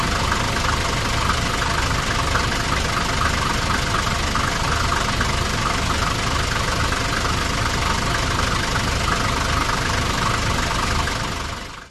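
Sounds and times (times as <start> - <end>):
truck engine idling: 0.0 - 11.8.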